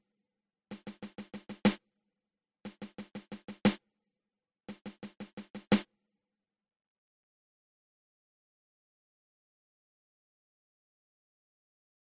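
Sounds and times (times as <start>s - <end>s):
seven stroke roll on drum: 0.7s - 1.8s, 2.7s - 3.8s, 4.7s - 5.8s.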